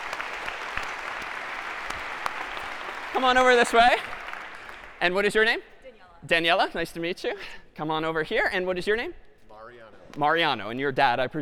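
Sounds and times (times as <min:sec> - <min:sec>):
audience applause for volunteers called up to the stage: 0:00.0 - 0:05.2
speech: 0:03.2 - 0:04.1, 0:05.0 - 0:11.3.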